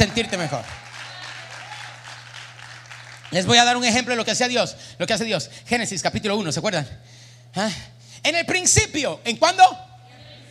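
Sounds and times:
speech: 0:00.0 - 0:00.8, 0:03.3 - 0:09.9
audience applauding: 0:00.0 - 0:03.9
low constant hum: 0:00.0 - 0:10.4.

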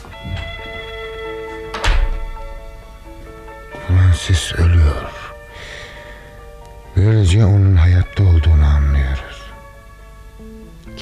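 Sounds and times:
door being shut: 0:01.6 - 0:03.0
speech: 0:03.9 - 0:05.2, 0:07.0 - 0:08.9.

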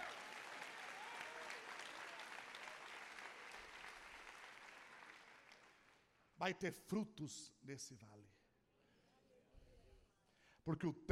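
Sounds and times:
audience applause: 0:00.0 - 0:06.0
speech: 0:06.4 - 0:08.4, 0:10.6 - 0:11.0.

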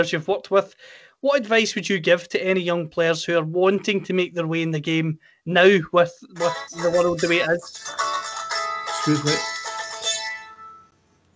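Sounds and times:
speech: 0:00.0 - 0:08.0, 0:09.0 - 0:09.5
mobile phone ringtone: 0:06.4 - 0:10.9.

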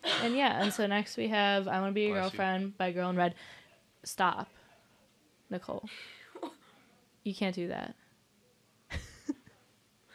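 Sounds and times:
person coughing: 0:00.0 - 0:00.8
speech: 0:00.2 - 0:04.6, 0:05.5 - 0:06.2, 0:07.2 - 0:08.0.

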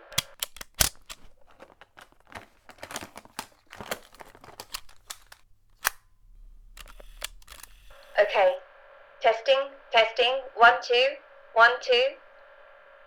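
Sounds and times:
cassette tape being changed in a recorder: 0:00.0 - 0:08.6
light rustling: 0:00.2 - 0:08.1
speech: 0:08.3 - 0:08.6, 0:09.2 - 0:12.2.

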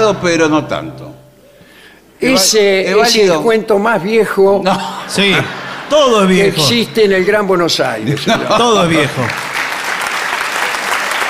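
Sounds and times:
speech: 0:00.1 - 0:01.2, 0:02.2 - 0:09.5
laughter: 0:04.7 - 0:07.0, 0:08.0 - 0:09.4
audience applause: 0:08.0 - 0:11.2.

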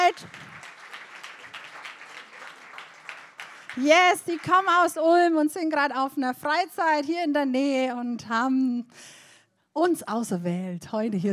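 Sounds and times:
audience applause: 0:00.0 - 0:04.8
speech: 0:00.1 - 0:00.5, 0:03.8 - 0:09.2, 0:09.8 - 0:11.3.

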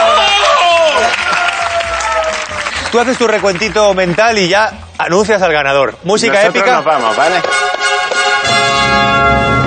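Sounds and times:
voices cheering: 0:00.0 - 0:03.6
audience applause: 0:00.0 - 0:04.4
speech: 0:02.9 - 0:07.9, 0:08.8 - 0:09.5.

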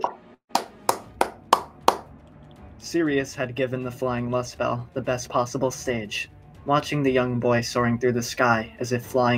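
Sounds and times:
crowd applauding: 0:00.6 - 0:02.0
speech: 0:02.9 - 0:09.3.

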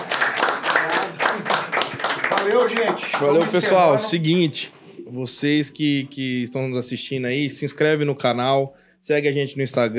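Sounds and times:
audience clapping: 0:00.0 - 0:04.2
speech: 0:02.5 - 0:09.9.

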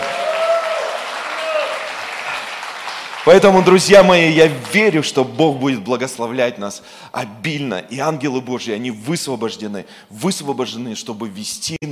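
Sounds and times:
audience applause: 0:00.0 - 0:03.8
speech: 0:03.2 - 0:11.9.

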